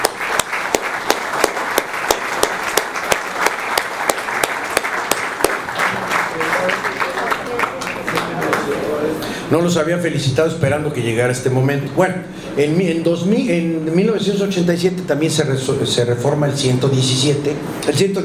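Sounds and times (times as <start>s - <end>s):
audience applause: 0.0s - 9.1s
speech: 9.5s - 18.2s.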